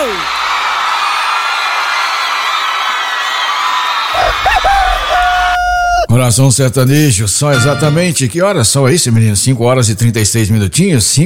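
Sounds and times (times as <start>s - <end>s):
applause and cheering: 0.0s - 5.6s
speech: 6.1s - 11.2s.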